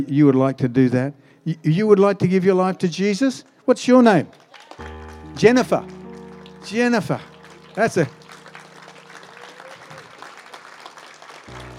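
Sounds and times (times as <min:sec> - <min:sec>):
speech: 0:00.0 - 0:06.0, 0:06.6 - 0:08.2
audience clapping: 0:04.1 - 0:11.7.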